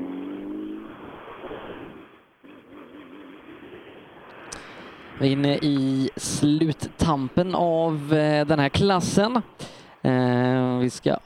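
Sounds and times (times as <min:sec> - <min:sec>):
rally car driving past on a rally stage: 0:00.0 - 0:09.0
speech: 0:05.2 - 0:11.2.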